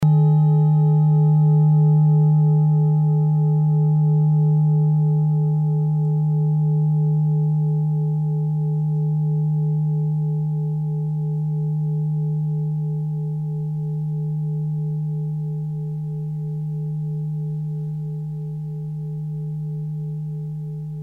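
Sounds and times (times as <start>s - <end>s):
Orissa singing bowl: 0.0s - 21.0s.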